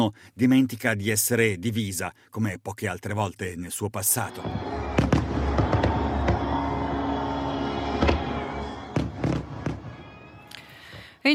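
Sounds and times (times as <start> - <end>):
speech: 0.0 - 5.1
fireworks display exploding: 4.3 - 10.6.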